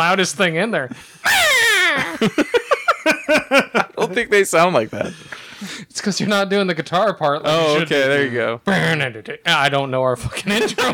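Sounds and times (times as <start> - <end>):
speech: 0.0 - 1.4, 2.0 - 2.8, 3.5 - 10.9
voice imitating a screaming eagle: 1.2 - 2.1
laughter: 1.4 - 5.2, 10.5 - 10.9.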